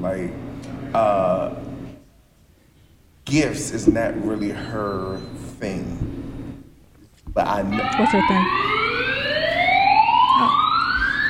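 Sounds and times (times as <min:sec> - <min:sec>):
speech: 0:00.0 - 0:01.7, 0:03.3 - 0:06.2, 0:07.4 - 0:08.7
alarm siren wailing: 0:07.7 - 0:11.2.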